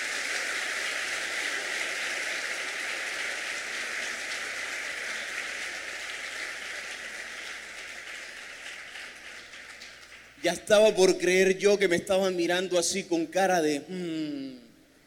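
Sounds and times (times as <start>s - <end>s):
crowd applauding: 0.0s - 10.9s
speech: 10.4s - 14.6s.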